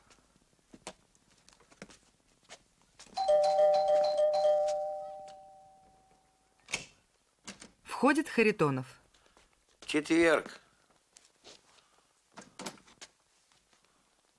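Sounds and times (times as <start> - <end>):
doorbell chiming: 3.2 - 6.3
speech: 8.0 - 9.0, 9.9 - 10.6.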